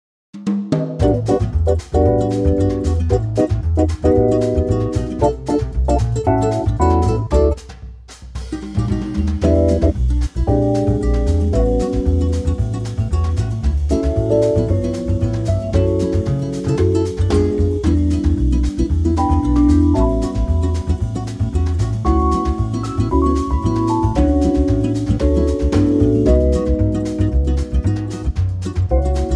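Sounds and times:
Latin music in D: 0.5 - 29.3.

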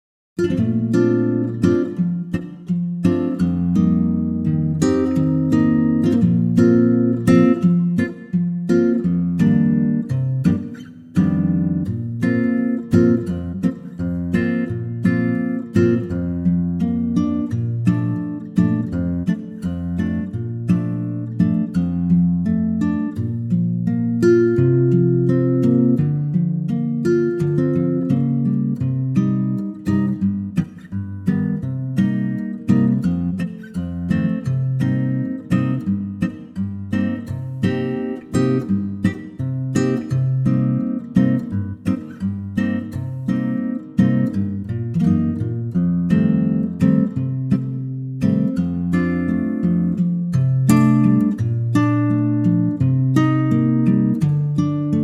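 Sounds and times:
acoustic guitar in B flat: 0.4 - 55.0.

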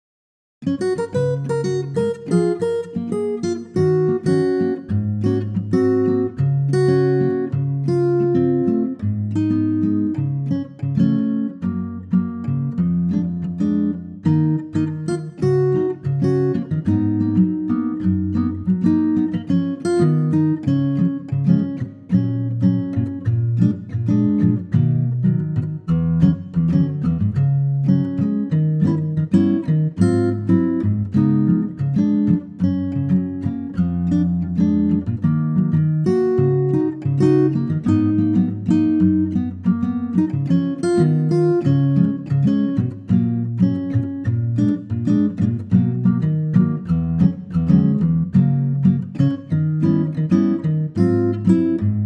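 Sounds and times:
Latin acoustic guitar in G flat: 0.6 - 52.0.

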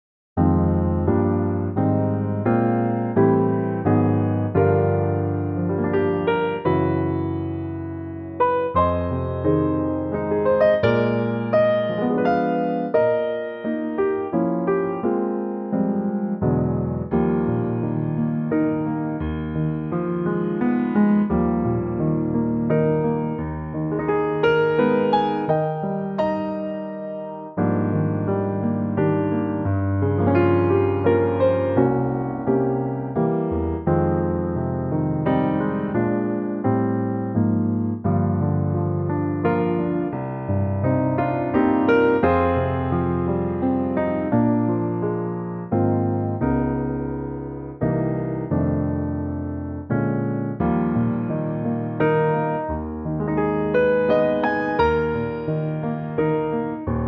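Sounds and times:
electric piano: 0.4 - 57.0.

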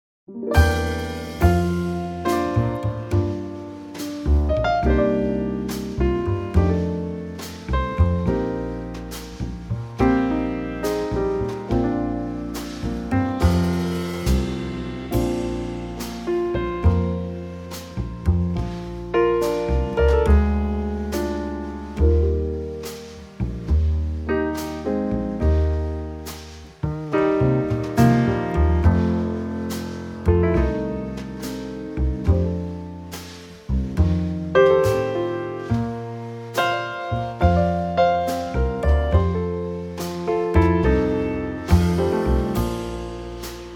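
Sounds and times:
B flat instrumental trio: 0.3 - 43.7.

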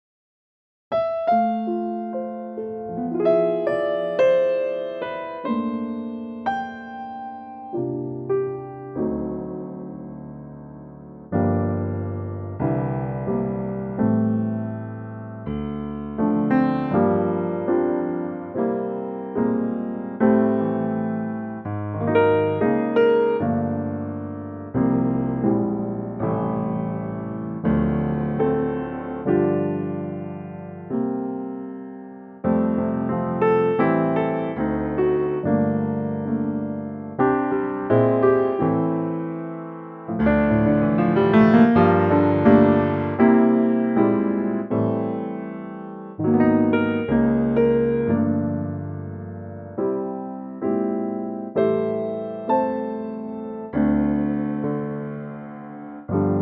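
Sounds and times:
piano note F: 0.9 - 56.4.

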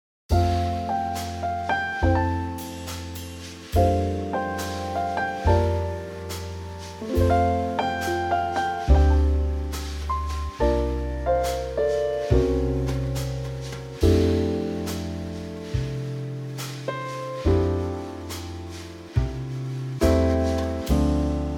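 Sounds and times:
instrumental trio in F: 0.3 - 21.5.

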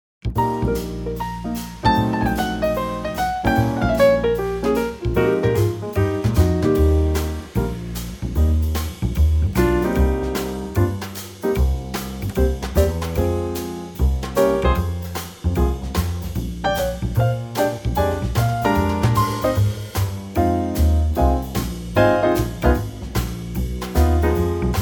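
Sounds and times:
instrumental trio music in E-flat: 0.2 - 24.8.

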